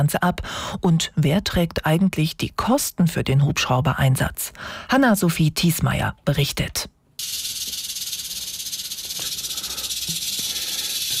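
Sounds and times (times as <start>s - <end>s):
speech: 0.0s - 7.5s
snake hissing: 7.2s - 11.1s.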